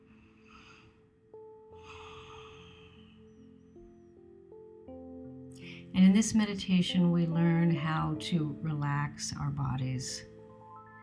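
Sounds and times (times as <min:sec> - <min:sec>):
deep breathing during guided meditation: 0:00.0 - 0:01.1, 0:01.8 - 0:03.3, 0:05.6 - 0:05.9
speech: 0:05.9 - 0:10.3.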